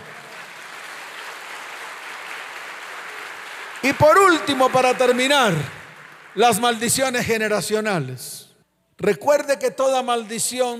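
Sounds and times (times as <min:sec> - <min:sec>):
audience applauding: 0:00.0 - 0:07.5
speech: 0:03.8 - 0:05.8, 0:06.4 - 0:08.4, 0:09.0 - 0:10.7.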